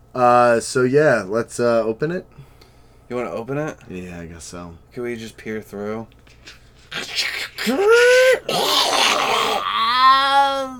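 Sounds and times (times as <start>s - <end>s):
speech: 0.2s - 2.5s, 3.1s - 10.7s
cat in heat yowling: 7.6s - 10.7s.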